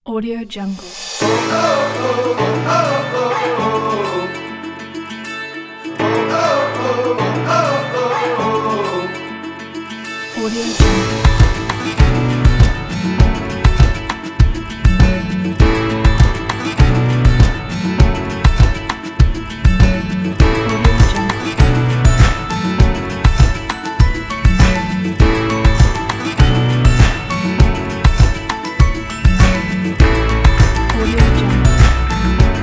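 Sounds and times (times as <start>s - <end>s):
indie folk music: 1.2s - 32.6s.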